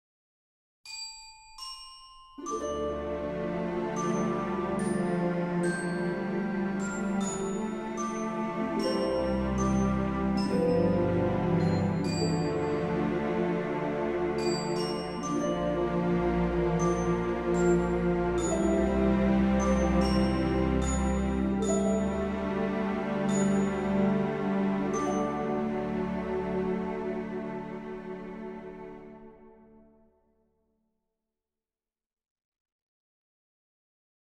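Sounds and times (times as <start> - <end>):
solo music box: 0.9 - 27.3.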